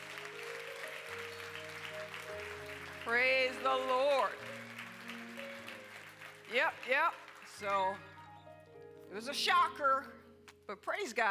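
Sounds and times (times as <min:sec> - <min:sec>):
audience applause at a ministry gathering: 0:00.0 - 0:08.0
speech: 0:03.1 - 0:04.5, 0:06.5 - 0:08.1, 0:09.1 - 0:11.2.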